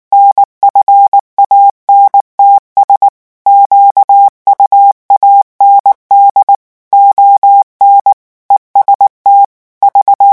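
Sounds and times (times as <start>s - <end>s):
morse code at 18 words per minute: 0.2s - 10.3s.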